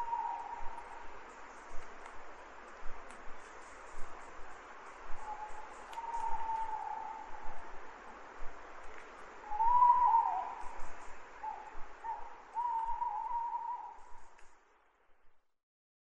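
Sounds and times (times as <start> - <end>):
owls hooting: 0.0 - 1.0, 5.2 - 7.6, 9.4 - 10.8, 11.4 - 14.3.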